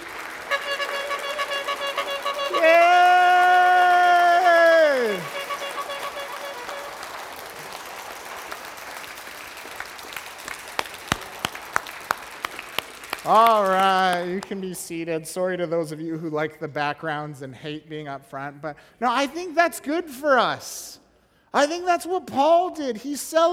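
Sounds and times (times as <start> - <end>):
large crowd applauding: 0.0 - 14.7
loud whoop: 2.5 - 5.5
speech: 14.5 - 23.5.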